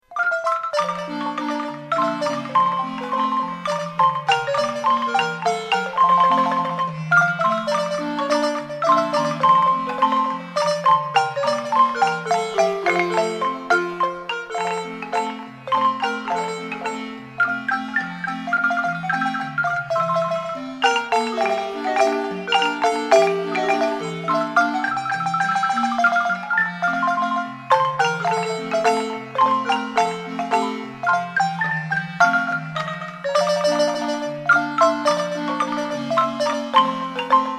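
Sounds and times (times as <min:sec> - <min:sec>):
marimba: 0:00.0 - 0:37.5.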